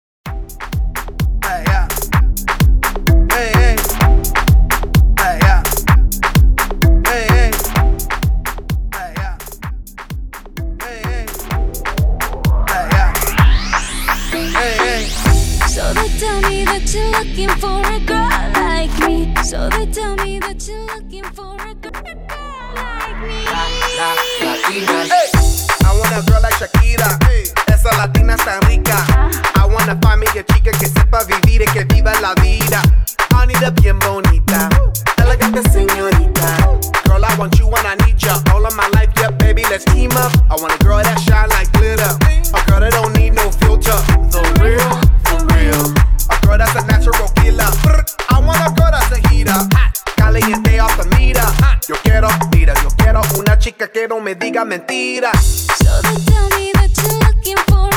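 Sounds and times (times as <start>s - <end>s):
up-tempo Top 40 remix: 0.2s - 57.9s.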